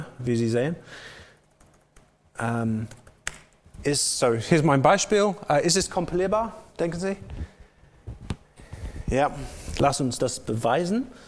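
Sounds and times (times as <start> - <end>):
speech: 0.2 - 1.2, 2.4 - 3.0, 3.8 - 7.5, 9.1 - 11.2
computer keyboard keystrokes as code is written: 1.5 - 2.1, 2.9 - 3.7.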